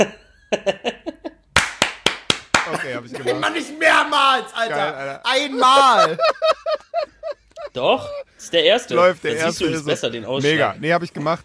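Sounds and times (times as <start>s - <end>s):
speech: 0.0s - 0.8s, 2.9s - 6.6s, 7.7s - 11.4s
group clapping on a shared count: 1.5s - 2.9s
laughter: 2.6s - 10.1s.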